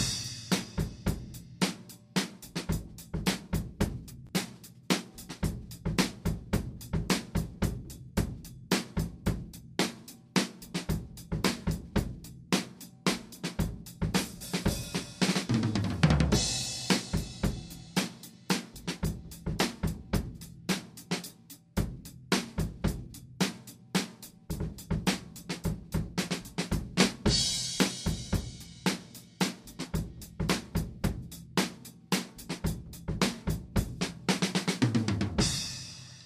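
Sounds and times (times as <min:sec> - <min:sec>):
rock beat in 5-4 time at 110 BPM: 0:00.0 - 0:36.2.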